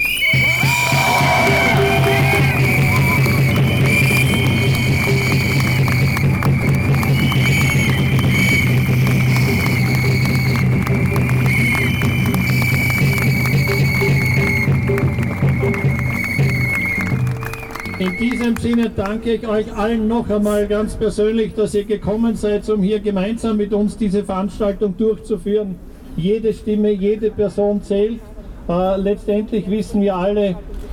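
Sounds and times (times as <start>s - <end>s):
audience applause: 0.0s - 19.2s
speech: 18.5s - 30.9s.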